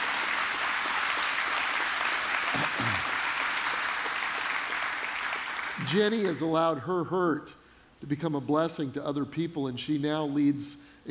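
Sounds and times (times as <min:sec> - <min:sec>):
large audience applause: 0:00.0 - 0:06.0
speech: 0:05.8 - 0:11.0.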